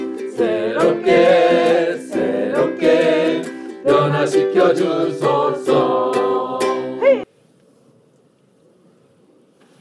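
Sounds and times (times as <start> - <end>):
Korean song: 0.0 - 7.3.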